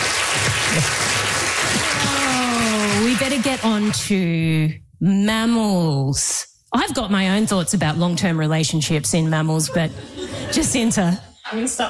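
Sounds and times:
audience applause: 0:00.0 - 0:04.0
speech: 0:03.4 - 0:11.8.

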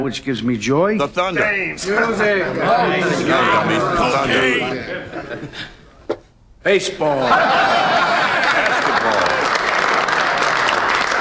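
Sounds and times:
speech: 0:00.0 - 0:05.8, 0:06.6 - 0:08.6
laughter: 0:01.4 - 0:06.0, 0:07.2 - 0:11.1
crowd clapping: 0:07.3 - 0:11.1.

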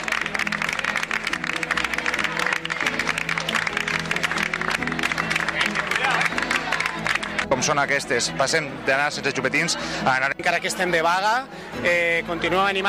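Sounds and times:
teachers applauding as a group: 0:00.0 - 0:07.7
murmuring voices: 0:00.0 - 0:12.8
speech: 0:07.5 - 0:12.8.

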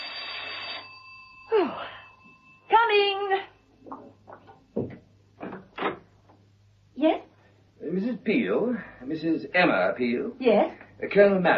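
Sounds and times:
doorbell ringing with metallic buzzing tone: 0:00.0 - 0:03.6
speech: 0:08.0 - 0:11.5.

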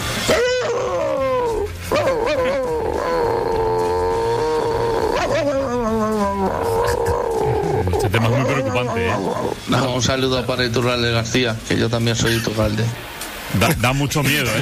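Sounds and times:
person imitating a chihuahua barking: 0:00.3 - 0:09.6
speech: 0:09.7 - 0:14.5.

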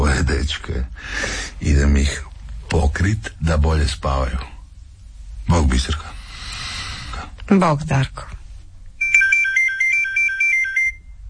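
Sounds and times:
speech: 0:00.5 - 0:04.5, 0:05.5 - 0:06.2, 0:07.5 - 0:08.4
telephone ringing: 0:09.0 - 0:11.1.

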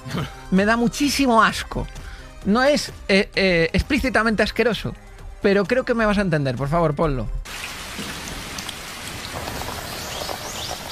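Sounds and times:
speech: 0:00.1 - 0:08.1
shower water running: 0:07.5 - 0:10.9.

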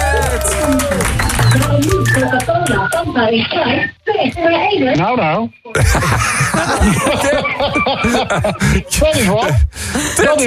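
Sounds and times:
audience applauding: 0:00.0 - 0:03.0
voices cheering: 0:00.0 - 0:03.0
speech: 0:02.2 - 0:10.4
laughter: 0:05.8 - 0:10.4.

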